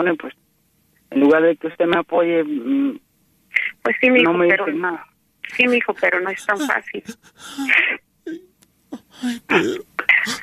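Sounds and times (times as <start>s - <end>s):
speech: 0.0s - 0.4s, 1.1s - 8.5s, 9.1s - 10.4s
gasping breaths: 5.5s - 10.4s
man crying: 5.5s - 10.4s.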